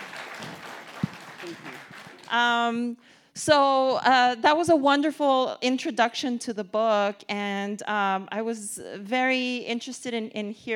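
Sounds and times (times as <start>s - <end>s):
audience applause: 0.0s - 2.4s
speech: 2.3s - 10.7s.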